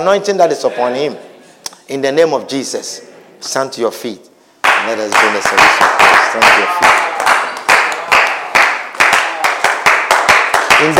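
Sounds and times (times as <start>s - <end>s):
speech: 0.0s - 1.3s, 1.9s - 7.2s, 10.8s - 10.9s
audience clapping: 4.6s - 10.9s.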